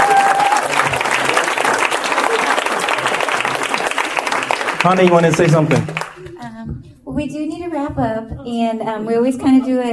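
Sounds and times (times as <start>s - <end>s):
audience applause: 0.0s - 6.4s
speech: 4.8s - 6.0s, 6.7s - 9.9s.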